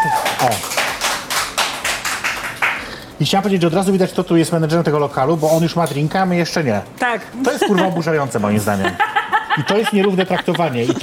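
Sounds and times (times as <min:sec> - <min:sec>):
hand clapping: 0:00.0 - 0:03.0
speech: 0:00.4 - 0:00.8, 0:03.2 - 0:11.0.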